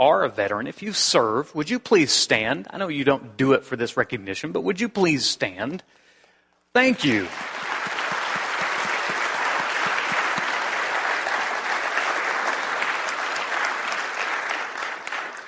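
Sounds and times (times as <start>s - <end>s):
speech: 0.0s - 6.0s, 6.8s - 7.6s
audience applause for standing veterans: 7.0s - 15.4s.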